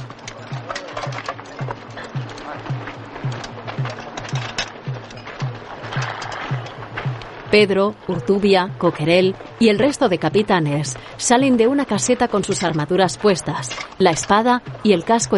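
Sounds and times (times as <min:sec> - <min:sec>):
hooves of horses being led out thudding: 0:00.0 - 0:15.3
murmuring voices: 0:00.0 - 0:15.3
speech: 0:07.5 - 0:15.3.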